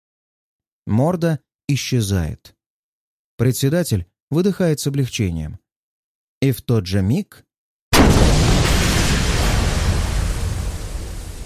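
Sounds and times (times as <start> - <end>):
speech: 0.9 - 2.6, 3.4 - 5.6, 6.4 - 8.4
explosion: 7.9 - 11.4.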